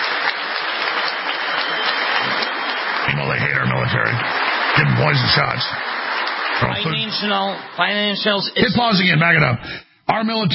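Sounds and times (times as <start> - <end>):
standing ovation applause: 0.0 - 8.4
speech: 3.9 - 10.5.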